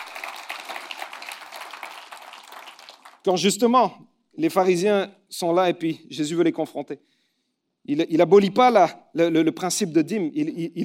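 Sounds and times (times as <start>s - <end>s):
church congregation applauding during a sermon: 0.0s - 3.4s
speech: 3.2s - 7.2s, 7.8s - 10.8s.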